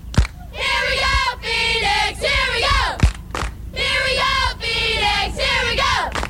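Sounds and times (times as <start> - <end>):
sharp clap or thump: 0.1 - 0.4, 3.0 - 3.6
crowd chanting a sports cheer: 0.4 - 6.2.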